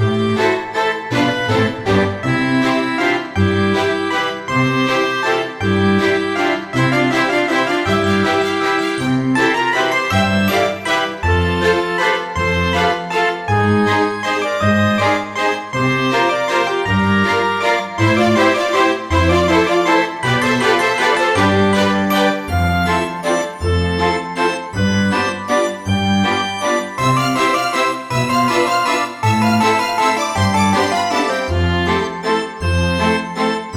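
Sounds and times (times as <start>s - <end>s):
160 BPM instrumental music: 0.0s - 33.7s.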